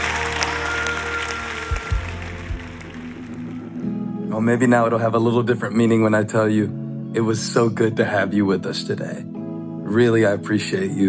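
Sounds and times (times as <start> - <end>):
audience clapping hands: 0.0 - 3.8
speech: 4.4 - 9.3, 9.9 - 11.0.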